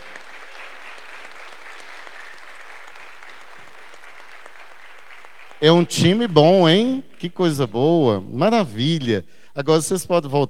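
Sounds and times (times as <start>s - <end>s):
audience applauding new altar servers: 0.0s - 8.3s
speech: 5.6s - 10.4s.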